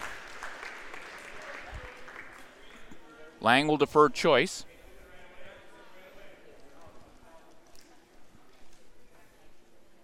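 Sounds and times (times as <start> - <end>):
smattering of applause from hometown crowd: 0.0 - 2.9
speech: 3.4 - 4.7.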